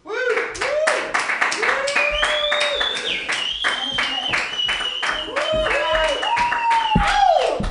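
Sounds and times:
comedy club audience clapping: 0:00.3 - 0:07.6
whoops and voices: 0:01.6 - 0:07.6.

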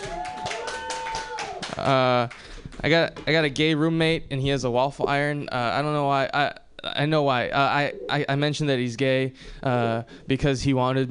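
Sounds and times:
audience clapping: 0:00.0 - 0:03.0
speech: 0:01.8 - 0:11.0.

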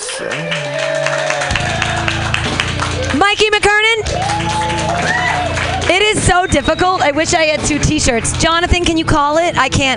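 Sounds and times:
people whooping: 0:00.0 - 0:03.2, 0:04.0 - 0:07.2
crowd clapping: 0:00.0 - 0:09.4
speech: 0:00.2 - 0:00.8, 0:06.6 - 0:09.9.

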